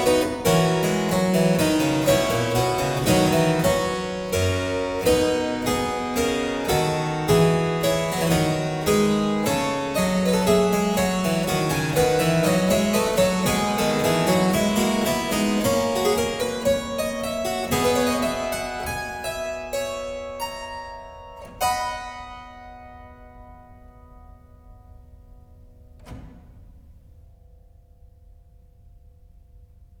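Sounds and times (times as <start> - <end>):
keyboard fugue: 0.0 - 23.7.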